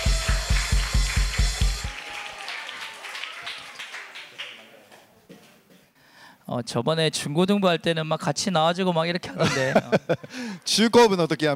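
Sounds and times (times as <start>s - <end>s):
audience clapping in unison rhythm: 0.0s - 5.5s
speech: 6.5s - 11.5s
laughter: 9.3s - 10.4s.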